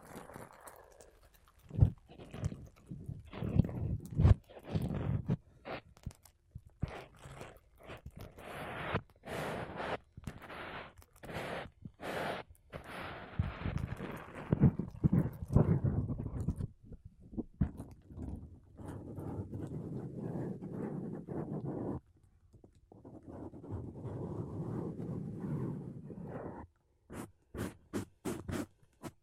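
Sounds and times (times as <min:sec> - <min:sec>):
microphone brushing using sponge: 0:02.3 - 0:05.9, 0:06.8 - 0:16.7, 0:18.8 - 0:22.1, 0:22.9 - 0:29.2
microphone brushing using makeup brushes: 0:06.8 - 0:16.6, 0:18.9 - 0:22.0, 0:23.0 - 0:29.2.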